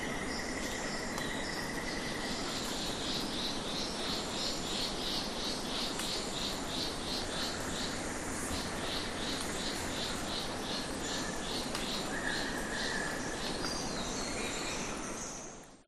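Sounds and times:
flying fox bats in trees in the evening in Australia: 0:00.0 - 0:15.8.

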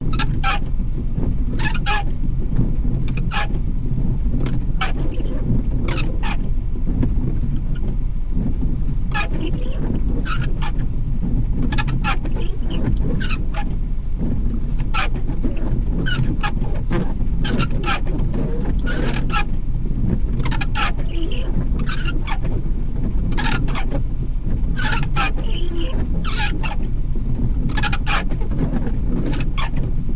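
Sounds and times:
car windshield wipers operating: 0:00.2 - 0:30.1.

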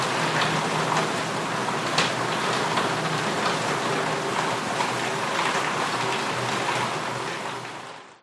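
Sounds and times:
rain falling on a metal roof heard from inside a house: 0:00.0 - 0:08.2.

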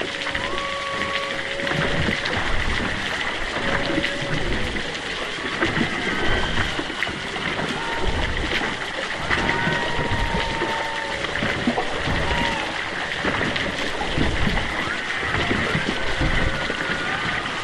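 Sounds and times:
humpback whale calls underwater off east Australia: 0:00.0 - 0:17.6.

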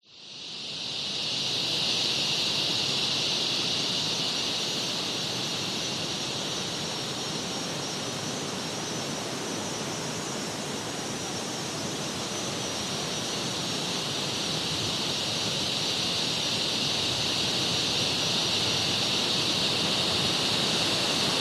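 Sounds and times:
cicadas: 0:00.0 - 0:21.4
strong wind in forest trees: 0:00.1 - 0:21.4.

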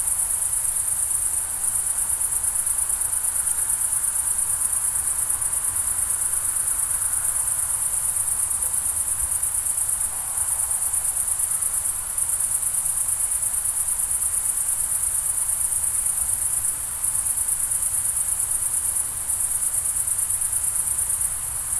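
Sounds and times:
crickets chirping on a summer night in the Pyrenees mountains, France: 0:00.0 - 0:21.7.

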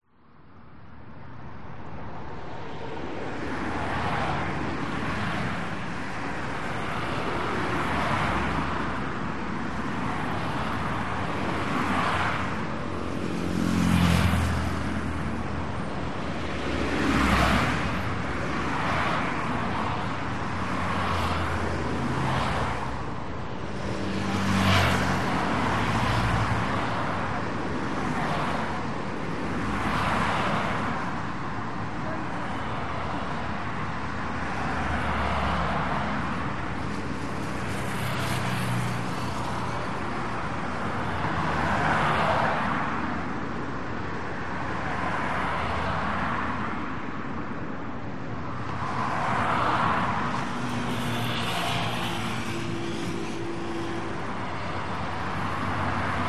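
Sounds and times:
busy traffic cars passing by a promenade in Spain: 0:00.2 - 0:56.2.

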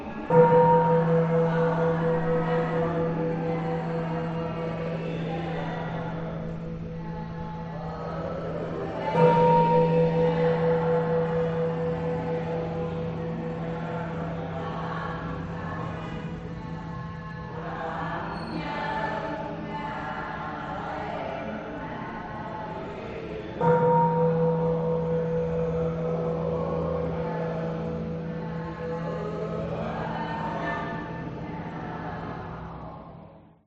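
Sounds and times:
prayer inside a Caodaist church in Vietnam: 0:00.0 - 0:33.5
bell inside a Caodaist church in Vietnam: 0:00.2 - 0:16.8, 0:23.6 - 0:31.8.

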